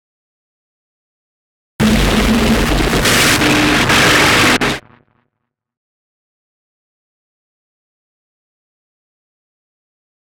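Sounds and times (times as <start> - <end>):
fuzzy warping warble: 1.8 - 5.1.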